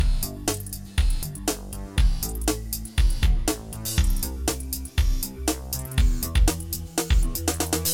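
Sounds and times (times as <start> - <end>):
rock music loop: 0.0 - 7.9.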